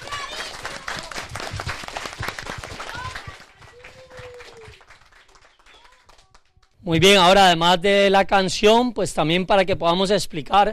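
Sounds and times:
loud audience applause: 0:00.0 - 0:06.8
speech: 0:06.9 - 0:10.7.

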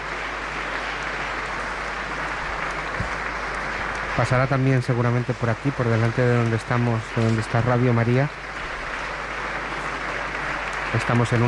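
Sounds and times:
large crowd applauding in a cathedral: 0:00.0 - 0:11.4
speech: 0:04.2 - 0:08.4, 0:10.9 - 0:11.4.

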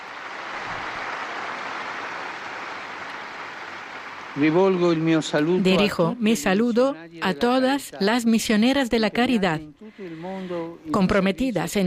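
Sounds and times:
audience applause: 0:00.0 - 0:06.1
speech: 0:04.4 - 0:11.8.

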